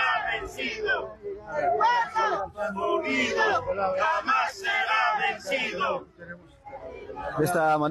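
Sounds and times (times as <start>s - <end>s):
marching crowd chanting a war cry: 0.0s - 6.1s.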